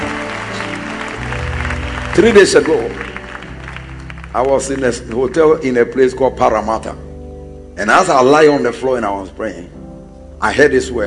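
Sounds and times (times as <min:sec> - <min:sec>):
audience clapping hands: 0:00.0 - 0:06.0
speech: 0:02.2 - 0:03.0, 0:04.4 - 0:07.0, 0:07.8 - 0:09.8, 0:10.4 - 0:11.0.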